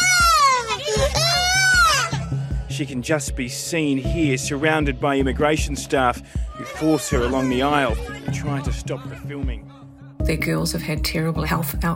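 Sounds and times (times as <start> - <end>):
children screaming and crying: 0.0 - 2.4, 6.3 - 8.9
speech: 2.8 - 11.9.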